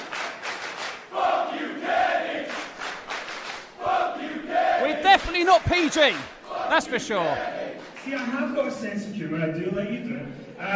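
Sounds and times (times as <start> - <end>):
wrestling crowd chanting in unison at a pro wrestling show: 1.1 - 2.7, 3.8 - 7.9
speech: 5.4 - 10.7.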